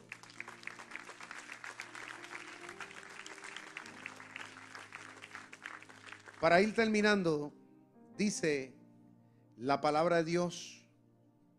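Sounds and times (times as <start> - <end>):
audience applauding: 0.0 - 7.2
speech: 6.4 - 7.6, 8.2 - 8.8, 9.6 - 10.8.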